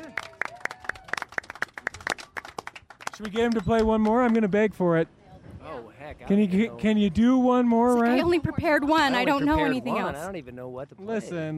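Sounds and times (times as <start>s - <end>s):
hand claps into a microphone: 0.0s - 4.5s
speech: 3.2s - 5.2s, 5.8s - 11.5s.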